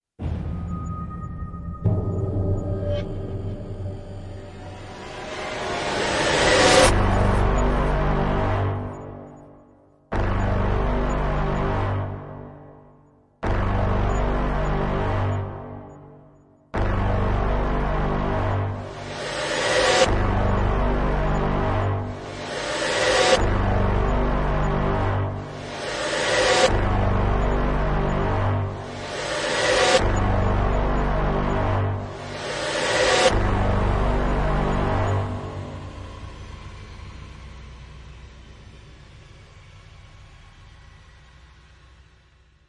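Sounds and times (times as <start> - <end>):
pads without percussion: 0.2 - 42.0.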